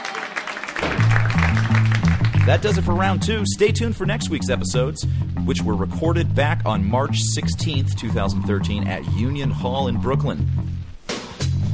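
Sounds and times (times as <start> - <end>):
audience applause: 0.0 - 2.8
speech: 2.5 - 10.8.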